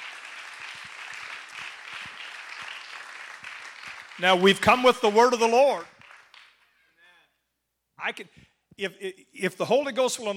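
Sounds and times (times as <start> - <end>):
audience clapping for guests: 0.0 - 6.8
speech: 4.2 - 5.9, 8.2 - 10.3.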